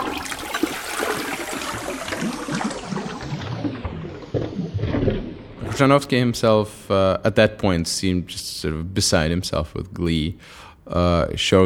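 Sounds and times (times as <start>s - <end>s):
toilet flushing: 0.0s - 6.5s
speech: 5.8s - 11.6s.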